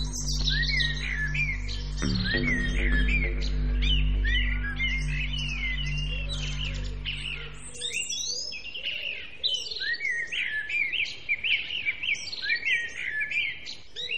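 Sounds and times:
low steady hum: 0.0s - 8.3s
several birds singing: 0.0s - 14.1s.

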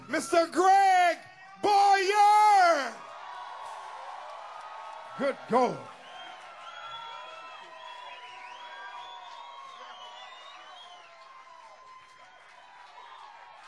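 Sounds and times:
speech: 0.1s - 3.0s, 5.2s - 5.9s
steady loud crowd roar: 1.6s - 13.6s
audience applause for trombone player: 3.0s - 13.6s
high wavering whoops and whistles: 6.0s - 11.3s.

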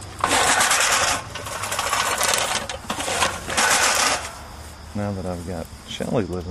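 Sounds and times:
power lawn mower running: 0.0s - 4.4s
speech: 5.0s - 6.5s.

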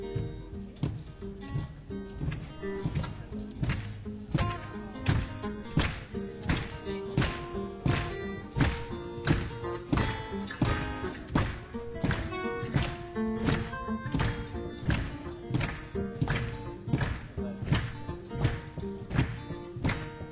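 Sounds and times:
crowd clapping along to a song: 0.1s - 20.3s.

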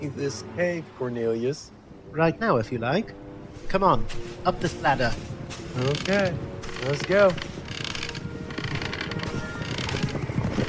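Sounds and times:
speech: 0.0s - 7.5s
approaching horses galloping: 5.8s - 10.6s.

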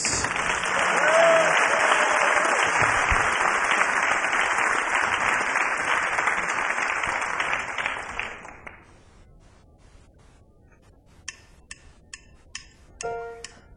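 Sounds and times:
audience applause: 0.0s - 8.9s.

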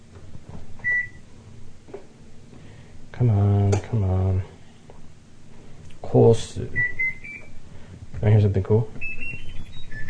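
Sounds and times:
washing machine high-pitched electronic beep: 0.8s - 1.3s, 6.7s - 7.6s, 8.9s - 10.0s
speech: 3.2s - 4.5s, 6.1s - 7.0s, 8.2s - 9.1s.

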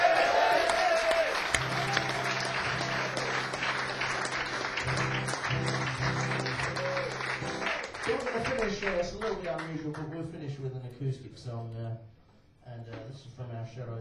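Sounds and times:
audience applause: 0.0s - 10.1s
speech: 8.6s - 14.0s.

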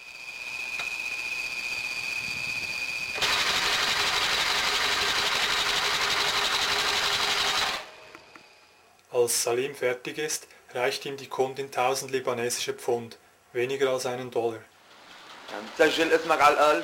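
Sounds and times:
sewing machine stitching a shoe sole in a shoemaker's workshop: 0.0s - 8.4s, 14.8s - 16.8s
speech: 9.2s - 14.7s, 15.5s - 16.8s.

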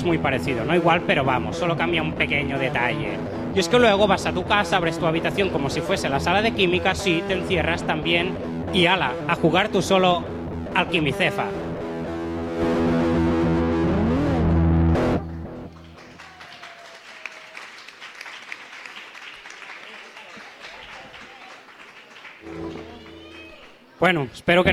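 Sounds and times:
speech: 0.0s - 11.6s, 24.0s - 24.7s
loud distorted music with a swooping tone: 0.0s - 15.7s, 22.4s - 23.5s
audience applause: 15.7s - 24.0s.

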